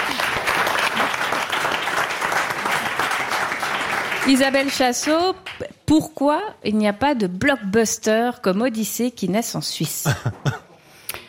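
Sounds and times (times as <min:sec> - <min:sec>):
crowd applause: 0:00.0 - 0:05.6
speech: 0:04.2 - 0:10.6.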